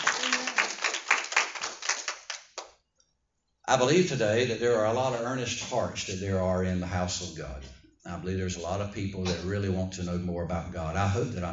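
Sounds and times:
audience hand clapping in praise: 0:00.0 - 0:02.8
speech: 0:03.7 - 0:11.5.

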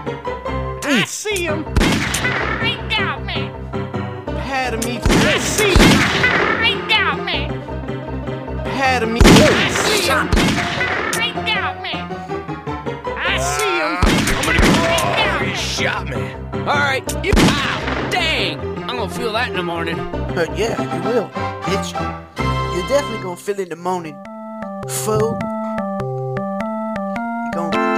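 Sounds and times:
speech: 0:00.0 - 0:00.4, 0:01.0 - 0:03.2, 0:08.8 - 0:12.0, 0:15.8 - 0:25.5
steady tonal game background: 0:00.0 - 0:27.9
gunshots in the video game Grizzly Gulch: 0:01.7 - 0:02.9, 0:05.0 - 0:06.7, 0:09.2 - 0:11.3, 0:14.0 - 0:15.2, 0:17.3 - 0:18.4.

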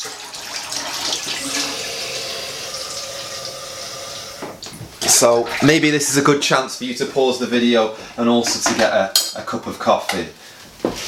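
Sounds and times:
water pouring for making coffee: 0:00.0 - 0:05.0
speech: 0:05.1 - 0:11.0.

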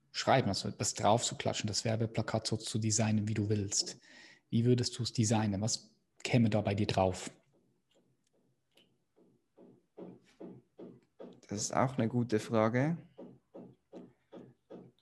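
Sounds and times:
speech: 0:00.2 - 0:07.4, 0:11.5 - 0:13.1
knocking from the next room: 0:09.1 - 0:11.8, 0:13.0 - 0:15.0.

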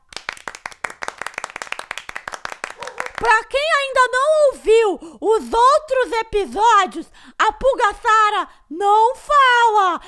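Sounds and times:
round of applause: 0:00.0 - 0:03.4
speech: 0:03.2 - 0:10.0.

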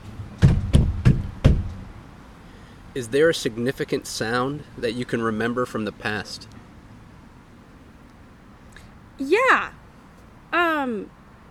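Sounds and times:
foot stomp: 0:00.4 - 0:01.8
speech: 0:02.9 - 0:06.6, 0:09.2 - 0:09.8, 0:10.5 - 0:11.2.

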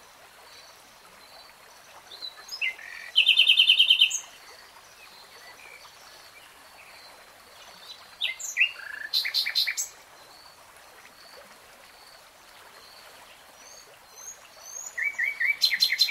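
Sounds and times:
nightingale song: 0:01.4 - 0:10.0, 0:13.7 - 0:16.0.

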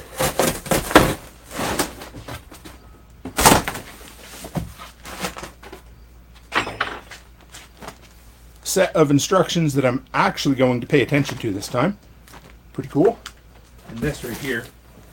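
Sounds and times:
cardboard box cut open during an unboxing in a home workshop: 0:00.0 - 0:02.0
speech: 0:08.7 - 0:12.1, 0:12.8 - 0:13.3, 0:13.9 - 0:14.8.

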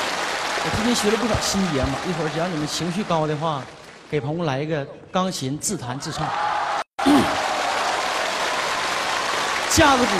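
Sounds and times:
audience applause: 0:00.0 - 0:04.1, 0:06.6 - 0:10.1
speech: 0:00.6 - 0:06.5, 0:09.8 - 0:10.1.

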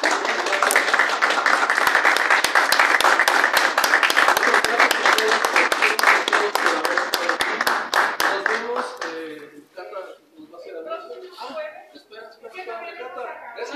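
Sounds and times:
applause: 0:00.0 - 0:09.3.

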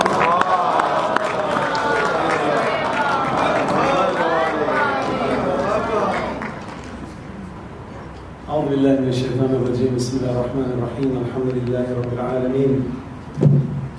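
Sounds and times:
audience chanting salawat at a Shia–Sunni interfaith unity conference: 0:00.0 - 0:06.5
speech: 0:09.1 - 0:13.1.

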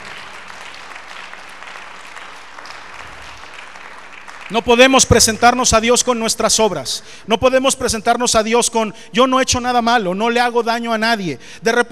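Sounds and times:
audience applauding: 0:00.0 - 0:05.2
speech: 0:04.5 - 0:11.8.

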